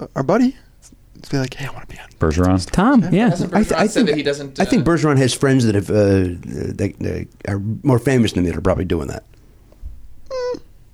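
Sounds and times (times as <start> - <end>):
speech: 0.0 - 9.4
person imitating a puppy noise: 10.2 - 10.9.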